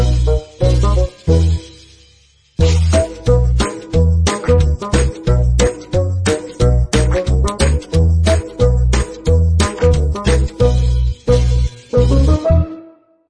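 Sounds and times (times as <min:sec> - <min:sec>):
pinball game interface background music: 0:00.0 - 0:13.2.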